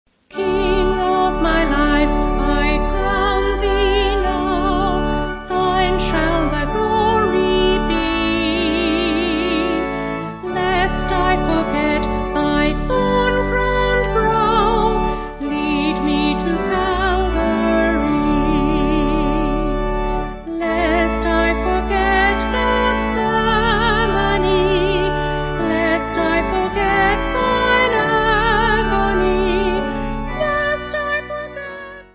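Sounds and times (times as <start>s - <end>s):
vocal organ: 0.2s - 32.1s.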